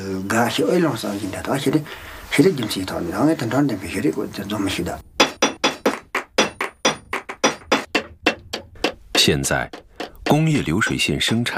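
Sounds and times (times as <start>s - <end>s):
speech: 0.0s - 5.1s, 9.2s - 11.5s
hammer striking metal in hand forging: 5.2s - 11.5s.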